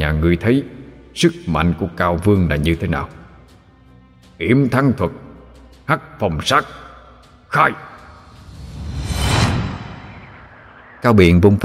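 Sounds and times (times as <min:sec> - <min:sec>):
speech: 0:00.1 - 0:03.2, 0:04.4 - 0:05.2, 0:05.9 - 0:06.8, 0:07.5 - 0:07.9, 0:11.0 - 0:11.6
cold gust of wind whooshing, audio drama effect: 0:07.9 - 0:11.3.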